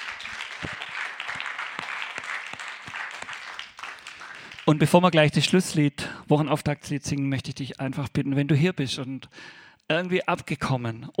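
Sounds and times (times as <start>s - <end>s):
audience applause: 0.0s - 4.9s
speech: 4.7s - 11.1s.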